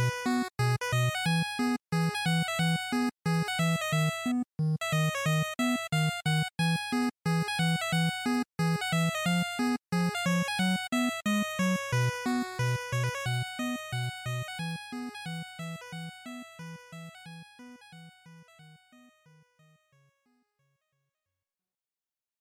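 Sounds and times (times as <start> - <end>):
NES shooter title chiptune game music: 0.0 - 17.2.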